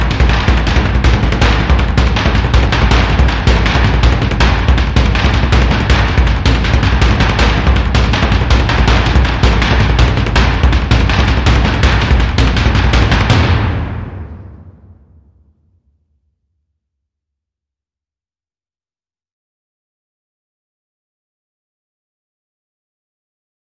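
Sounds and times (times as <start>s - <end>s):
mid drums: 0.0s - 15.5s.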